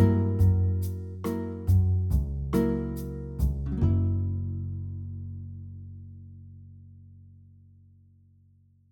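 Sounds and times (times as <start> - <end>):
jazz piano playing a minor two-five: 0.0 - 5.1.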